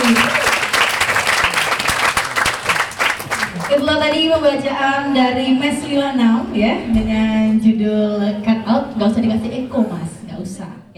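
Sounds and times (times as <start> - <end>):
enthusiastic audience applause: 0.0 - 6.6
speech: 4.1 - 10.9.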